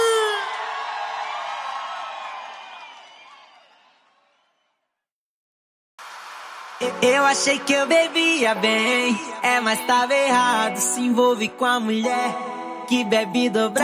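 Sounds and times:
live audience in São Paulo cheering and shouting: 0:00.4 - 0:04.0
speech: 0:06.8 - 0:13.8.

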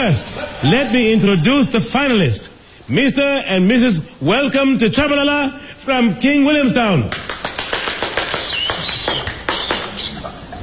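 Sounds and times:
speech: 0:00.0 - 0:07.2
audience clapping hands: 0:07.0 - 0:10.4.

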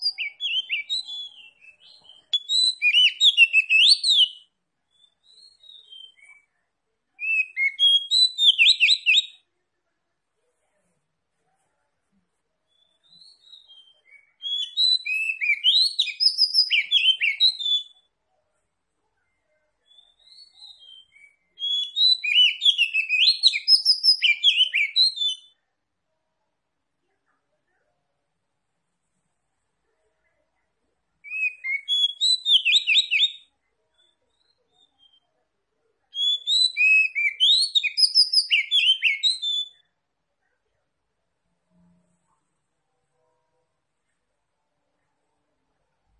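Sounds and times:
Oriental magpie-robin song: 0:00.0 - 0:09.5, 0:12.6 - 0:25.6, 0:31.2 - 0:35.4, 0:36.0 - 0:39.9.

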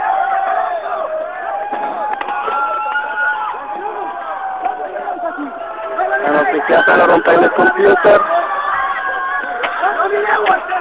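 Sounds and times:
crowd charging and shouting: 0:00.0 - 0:10.7
speech: 0:06.7 - 0:08.4.

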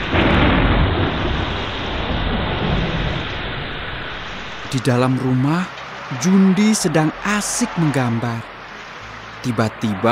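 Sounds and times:
thunder: 0:00.0 - 0:04.7
strong wind: 0:00.0 - 0:10.0
heavy rain: 0:00.0 - 0:10.1
speech: 0:04.7 - 0:08.5, 0:09.4 - 0:10.1.

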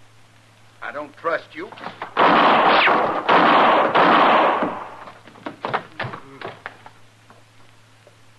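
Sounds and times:
speech: 0:01.0 - 0:04.0
gunshots: 0:01.8 - 0:05.1.

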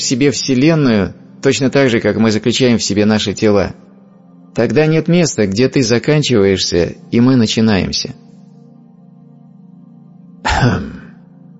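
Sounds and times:
speech: 0:00.0 - 0:03.9, 0:04.6 - 0:08.2, 0:10.6 - 0:10.9
throat clearing: 0:10.5 - 0:11.2.

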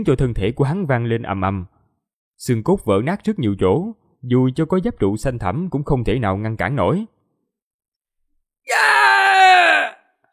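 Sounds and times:
speech: 0:00.0 - 0:01.7, 0:02.4 - 0:07.2
man screaming in pain: 0:08.7 - 0:10.1.

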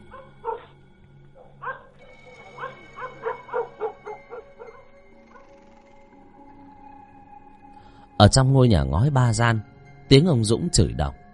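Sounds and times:
dogs barking loudly: 0:00.0 - 0:00.8, 0:01.4 - 0:04.9
dogs howling: 0:00.0 - 0:06.6
speech: 0:08.2 - 0:11.2.

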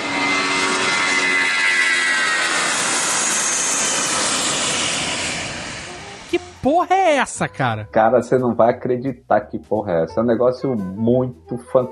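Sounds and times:
airliner jet engine fan spinning during takeoff: 0:00.0 - 0:06.4
speech: 0:06.6 - 0:11.8.

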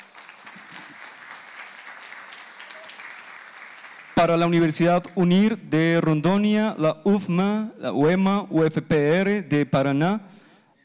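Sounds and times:
audience applause at an international peace gathering: 0:00.0 - 0:04.3
speech: 0:04.2 - 0:10.8.

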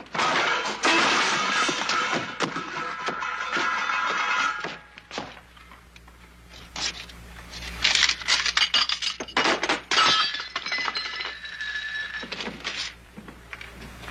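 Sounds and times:
glass vase shattering: 0:00.2 - 0:04.9, 0:07.9 - 0:12.5
scattering glass shards clinking: 0:00.2 - 0:05.0, 0:06.8 - 0:13.0.

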